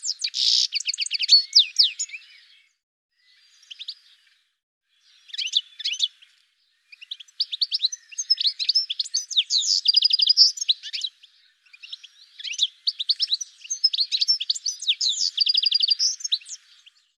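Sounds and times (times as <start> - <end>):
bird chirps and trills: 0.0 - 4.4, 5.0 - 17.1.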